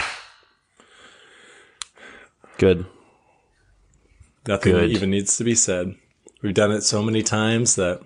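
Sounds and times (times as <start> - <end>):
hand clap: 0.0 - 0.5
speech: 2.6 - 3.0, 4.4 - 8.0.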